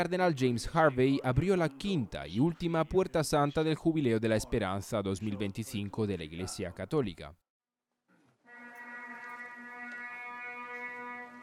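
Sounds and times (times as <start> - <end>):
speech: 0.0 - 7.4
shofar ram's horn blown in one long blast: 8.4 - 11.4.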